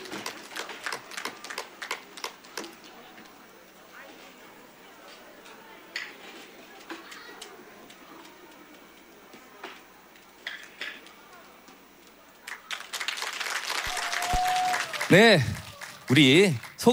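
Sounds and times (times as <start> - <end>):
audience applause after performance: 0.0 - 3.0, 12.3 - 16.9
speech: 15.1 - 16.9.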